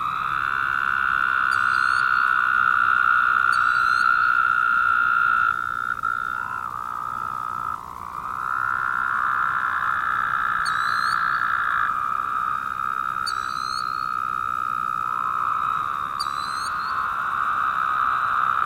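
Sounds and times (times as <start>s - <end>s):
Woodhouse's toad chorus of buzzy trills: 0.0s - 18.6s.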